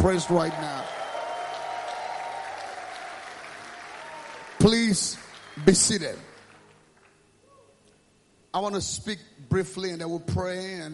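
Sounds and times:
speech: 0:00.0 - 0:01.0, 0:04.6 - 0:06.3, 0:08.5 - 0:10.9
audience clapping hands: 0:00.0 - 0:07.2.

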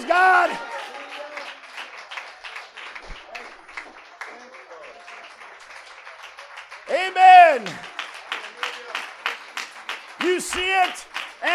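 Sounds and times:
audience clapping: 0:00.0 - 0:11.5.

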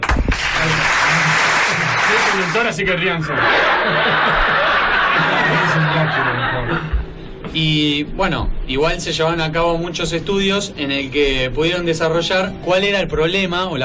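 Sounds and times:
applause: 0:00.0 - 0:02.8
laughter: 0:00.6 - 0:07.1
speech: 0:02.2 - 0:07.0, 0:07.6 - 0:13.8.

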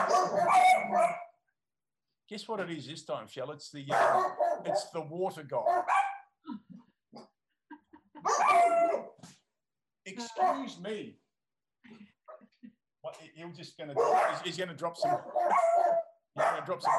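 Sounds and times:
dog barking: 0:00.0 - 0:01.3, 0:03.9 - 0:05.0, 0:05.6 - 0:06.3, 0:08.2 - 0:09.2, 0:10.2 - 0:10.8, 0:13.9 - 0:16.9
speech: 0:02.3 - 0:06.0, 0:10.2 - 0:11.2, 0:13.1 - 0:16.0, 0:16.6 - 0:16.9.

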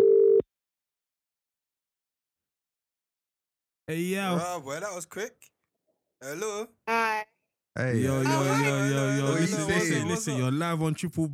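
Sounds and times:
telephone line tone during an outgoing call: 0:00.0 - 0:00.4
speech: 0:03.9 - 0:05.5, 0:06.2 - 0:11.3
laughter: 0:07.8 - 0:10.8.

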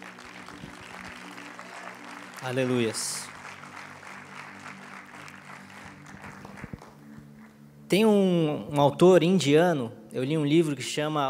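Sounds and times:
audience clapping: 0:00.0 - 0:07.6
speech: 0:02.4 - 0:03.3, 0:07.9 - 0:11.2.

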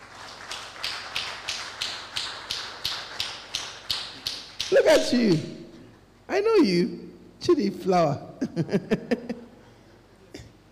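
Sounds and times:
audience clapping in rhythm: 0:00.0 - 0:05.6
speech: 0:04.9 - 0:05.5, 0:06.4 - 0:09.4.

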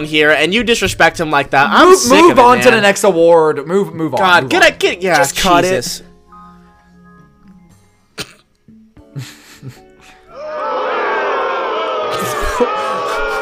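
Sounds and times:
speech: 0:00.0 - 0:06.1
coughs and throat noises: 0:08.2 - 0:08.6
laughter: 0:09.2 - 0:13.4
loud crowd booing: 0:10.3 - 0:13.4.

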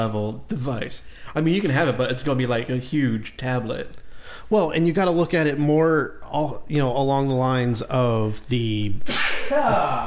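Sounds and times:
speech: 0:00.0 - 0:10.0
sneeze: 0:09.0 - 0:10.0.

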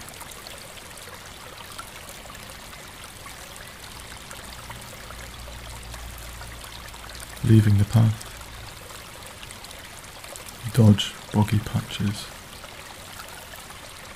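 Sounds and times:
small stream flowing: 0:00.0 - 0:14.1
speech: 0:07.5 - 0:08.3, 0:10.8 - 0:12.4.

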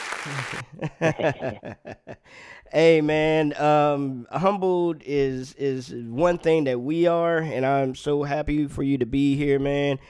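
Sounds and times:
hand claps: 0:00.0 - 0:00.6
laughter: 0:00.2 - 0:02.3
speech: 0:00.2 - 0:10.0.

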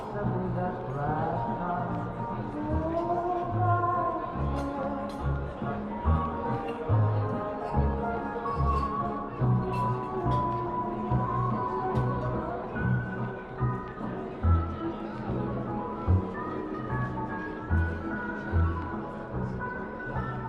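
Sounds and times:
old-style music in a coffee shop: 0:00.0 - 0:20.4.

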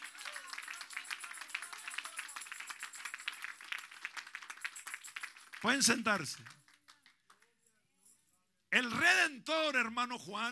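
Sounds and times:
audience applause: 0:00.0 - 0:07.4
speech: 0:05.6 - 0:06.6, 0:08.8 - 0:10.4.

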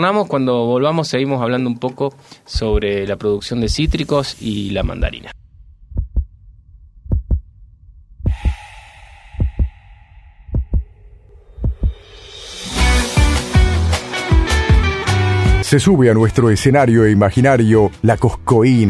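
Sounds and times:
speech: 0:00.0 - 0:05.4, 0:15.7 - 0:18.8
low heartbeat-like thumps: 0:02.6 - 0:04.1, 0:04.8 - 0:12.4
loud song with dense instrumentation: 0:12.6 - 0:15.7.

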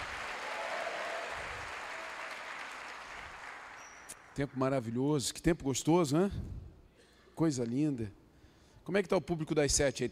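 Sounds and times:
audience applause: 0:00.0 - 0:04.2
speech: 0:04.4 - 0:06.6, 0:07.4 - 0:08.2, 0:08.8 - 0:10.1.

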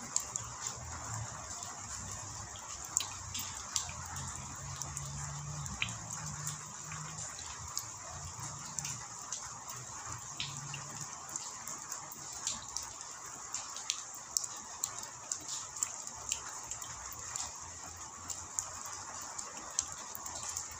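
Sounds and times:
drips and taps: 0:00.0 - 0:20.7
rain: 0:00.0 - 0:20.7.

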